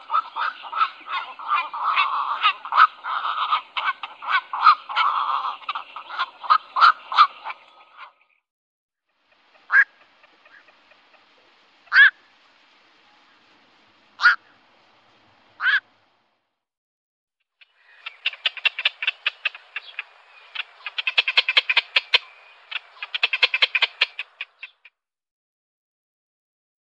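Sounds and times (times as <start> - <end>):
black-crowned night heron croaking and chattering: 0.0 - 8.2, 9.3 - 11.0, 17.6 - 24.9.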